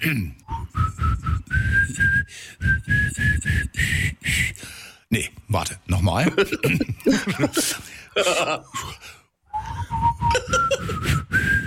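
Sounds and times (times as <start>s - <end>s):
speech: 0.0s - 1.1s, 5.5s - 9.1s
person whistling a pop song melody: 0.3s - 4.4s, 9.5s - 11.6s
laughter: 6.3s - 8.8s, 10.3s - 11.1s.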